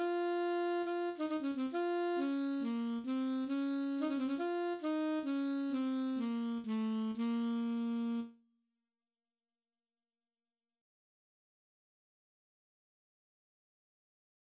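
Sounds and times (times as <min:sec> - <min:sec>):
alto saxophone playing an etude: 0:00.0 - 0:08.4.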